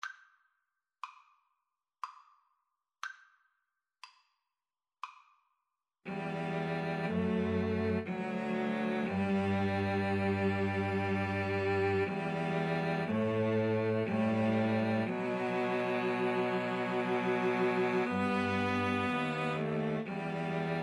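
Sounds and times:
cello trio: 0:06.1 - 0:20.8.

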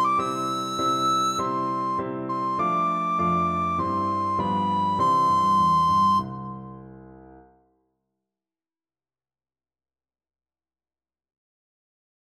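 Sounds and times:
recorder playing a hymn: 0:00.0 - 0:06.5.

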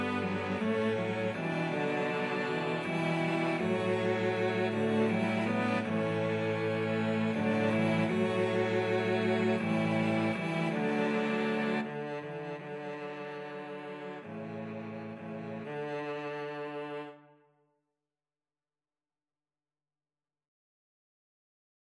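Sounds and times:
cello quartet: 0:00.0 - 0:17.4.

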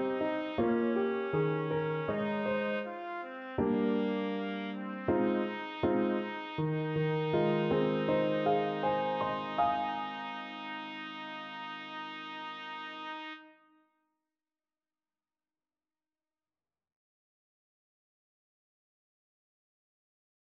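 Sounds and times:
trumpet: 0:00.0 - 0:13.9.

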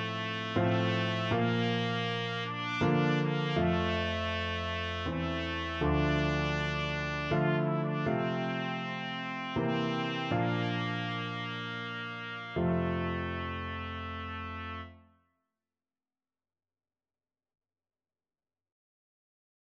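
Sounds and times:
trumpet duet: 0:00.0 - 0:15.0.

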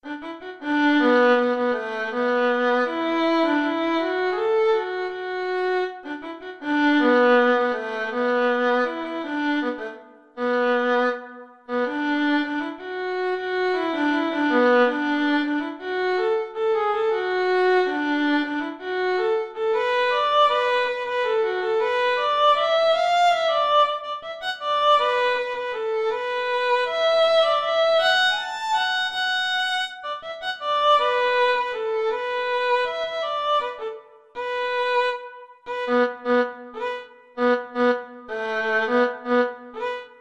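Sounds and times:
violin playing a funk study: 0:00.0 - 0:40.1.

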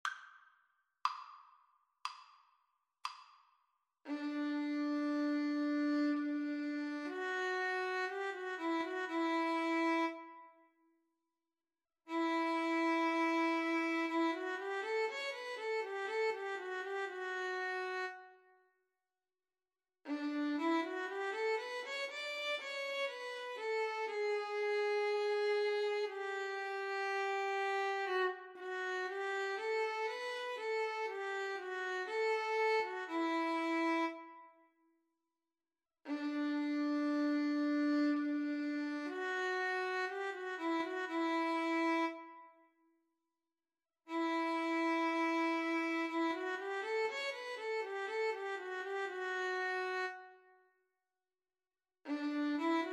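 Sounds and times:
violin and viola duet: 0:04.1 - 0:10.5, 0:12.1 - 0:18.3, 0:20.1 - 0:34.5, 0:36.1 - 0:42.4, 0:44.1 - 0:50.4, 0:52.1 - 0:52.9.

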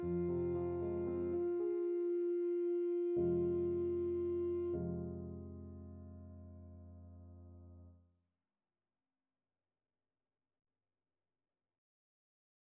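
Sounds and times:
saxophone: 0:00.0 - 0:05.5.

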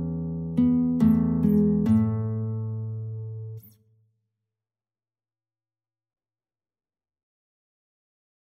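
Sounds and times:
guitar playing: 0:00.0 - 0:03.8.

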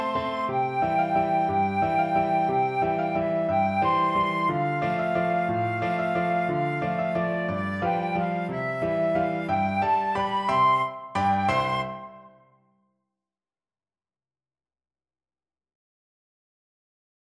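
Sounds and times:
flute playing traditional Mexican music: 0:00.0 - 0:12.6.

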